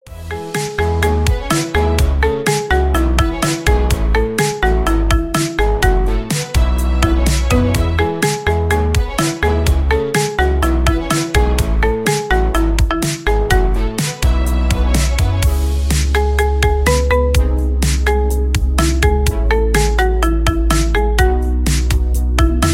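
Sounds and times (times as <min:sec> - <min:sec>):
marimba remix: 0:00.1 - 0:22.7.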